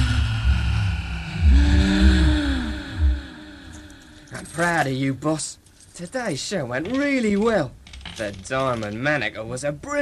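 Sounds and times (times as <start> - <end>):
TARDIS materialisation sound: 0.0 - 4.5
speech: 4.6 - 10.0.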